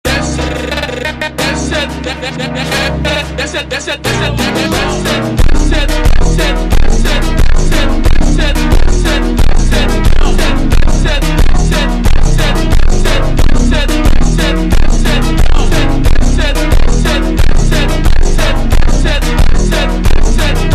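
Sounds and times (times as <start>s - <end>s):
ultra slowed space vocal montage: 0.1s - 20.7s.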